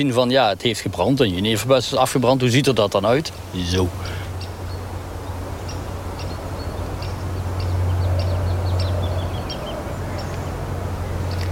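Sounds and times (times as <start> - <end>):
speech: 0.0 - 4.2
woodlark singing while flying past over burned juniper heathland: 3.3 - 11.5.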